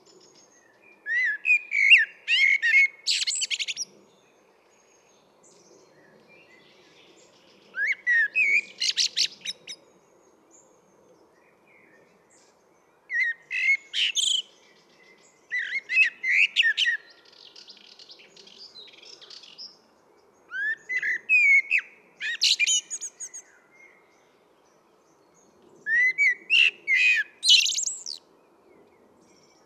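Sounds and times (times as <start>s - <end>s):
common blackbird Turdus merula singing: 0.1s - 4.2s, 5.8s - 9.8s, 13.1s - 19.8s, 20.5s - 24.3s, 25.8s - 28.2s.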